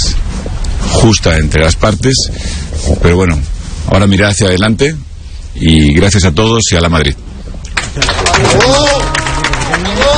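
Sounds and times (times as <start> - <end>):
speech: 1.0 - 7.3, 8.0 - 8.9
audience applause after a speech: 7.7 - 10.1.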